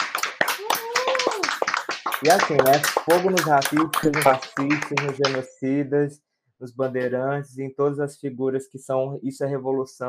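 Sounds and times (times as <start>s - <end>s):
crowd applauding: 0.0s - 5.4s
vocal whoop or cheer: 0.5s - 1.6s
speech: 2.2s - 10.0s.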